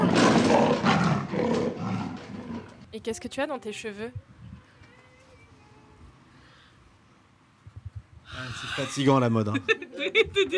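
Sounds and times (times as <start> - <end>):
big cat roar sound effect: 0.0 - 2.8
speech: 3.0 - 4.3, 8.3 - 10.5
laughter: 8.6 - 10.5.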